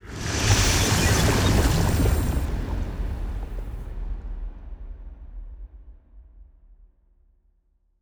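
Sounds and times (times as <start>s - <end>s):
ship moving: 0.0s - 3.9s.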